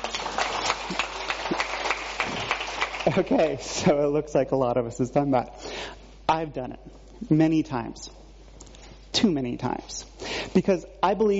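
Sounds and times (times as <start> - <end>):
crowd applauding: 0.0 - 3.6
speech: 3.1 - 8.2, 9.2 - 11.3.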